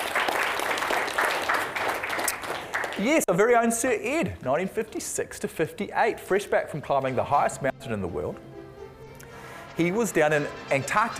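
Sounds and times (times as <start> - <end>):
audience clapping for a speaker at a talk about Antarctic expeditions: 0.0 - 3.7
speech: 3.0 - 8.5, 9.8 - 11.1.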